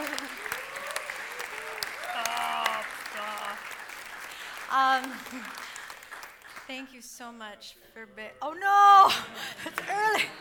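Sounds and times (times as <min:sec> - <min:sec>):
audience applause: 0:00.0 - 0:06.7
speech: 0:04.8 - 0:05.6, 0:06.7 - 0:10.3.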